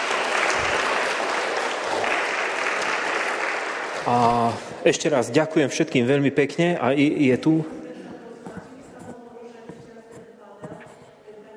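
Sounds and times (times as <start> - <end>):
audience applause: 0.0 - 5.0
speech: 4.1 - 7.8.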